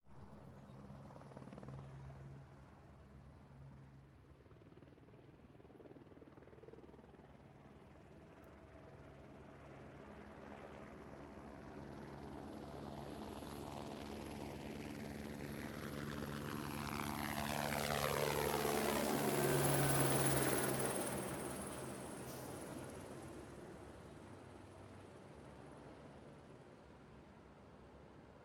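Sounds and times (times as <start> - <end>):
helicopter: 0.0 - 28.4.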